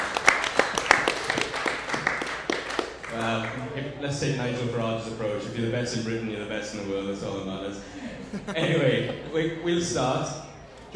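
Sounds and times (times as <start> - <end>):
audience round of applause: 0.0 - 2.8
speech: 3.2 - 10.9
laughter: 8.0 - 9.7.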